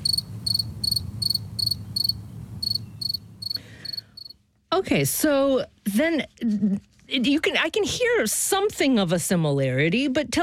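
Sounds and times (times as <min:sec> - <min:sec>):
modern-day crickets chirping: 0:00.0 - 0:04.4
speech: 0:04.8 - 0:10.4.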